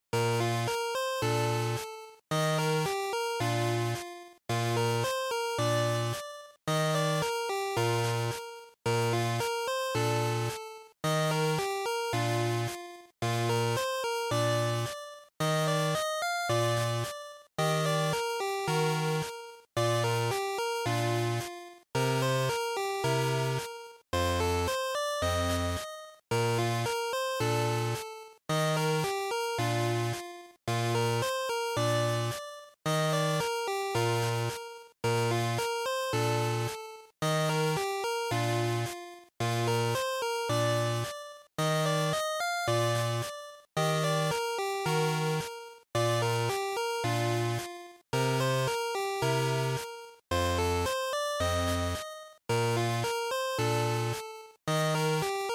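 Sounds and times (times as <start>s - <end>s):
Game Boy RPG town music: 0.1s - 55.5s.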